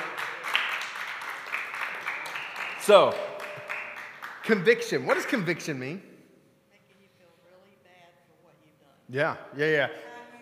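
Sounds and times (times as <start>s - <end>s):
round of applause: 0.0s - 5.4s
speech: 2.9s - 3.3s, 4.5s - 6.1s, 9.1s - 10.1s.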